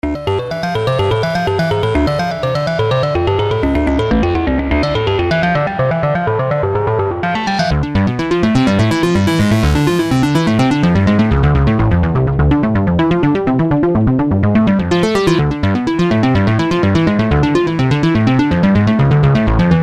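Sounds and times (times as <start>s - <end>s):
analog FM synth sound: 0.1s - 19.8s.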